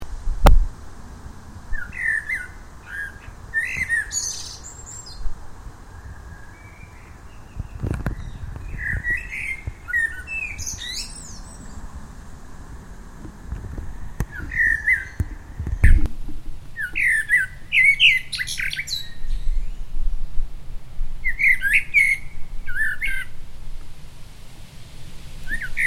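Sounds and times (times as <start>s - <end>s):
common blackbird singing warbled phrases: 1.7s - 5.3s, 6.0s - 12.0s, 14.2s - 16.1s, 16.8s - 19.9s, 21.2s - 23.4s, 25.4s - 25.8s.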